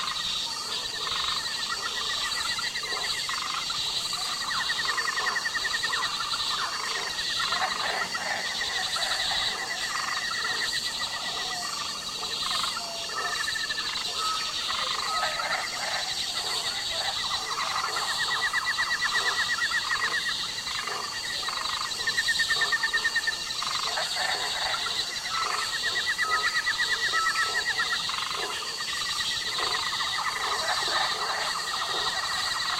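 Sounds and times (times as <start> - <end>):
South American jungle at night: 0.0 - 32.7.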